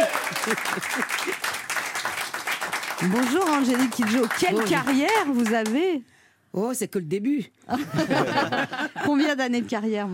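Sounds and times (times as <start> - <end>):
laughter: 0.0 - 1.5, 7.7 - 9.5
audience applause during a standing ovation: 0.0 - 5.8
speech: 0.5 - 2.2, 3.0 - 10.1.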